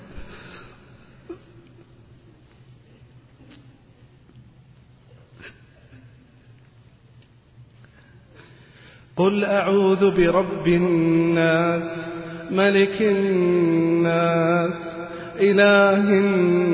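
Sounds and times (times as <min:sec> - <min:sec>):
person reciting: 0:09.2 - 0:16.7.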